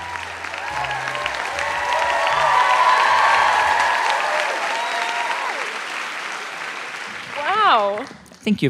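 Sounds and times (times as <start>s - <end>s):
live audience applause: 0.0s - 8.3s.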